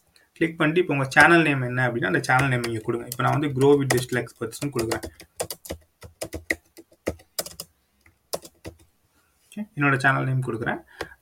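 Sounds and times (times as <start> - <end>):
speech: 0.4 - 5.8, 9.6 - 11.0
typing on a computer keyboard: 2.2 - 7.7, 8.3 - 8.8.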